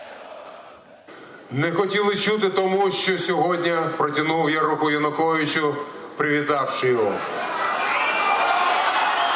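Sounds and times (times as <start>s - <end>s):
protesting crowd booing and jeering: 0.0s - 1.3s, 7.2s - 9.3s
speech: 1.5s - 7.5s.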